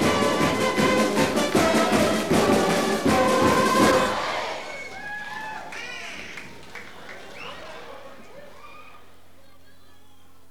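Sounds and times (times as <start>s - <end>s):
pep song: 0.0s - 4.5s.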